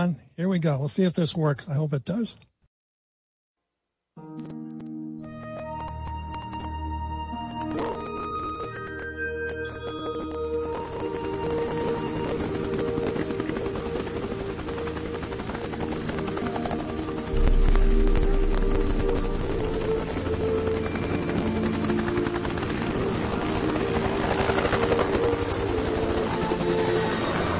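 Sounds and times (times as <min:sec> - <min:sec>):
speech: 0:00.0 - 0:02.5
helicopter rotor blades: 0:05.7 - 0:27.5.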